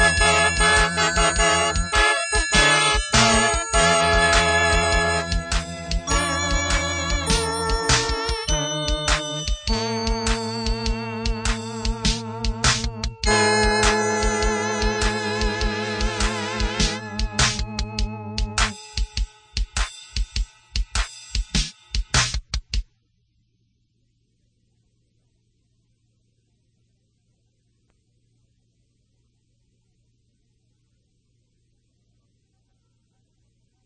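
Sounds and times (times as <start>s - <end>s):
poor attempt at rhythm playing: 0.0s - 22.8s.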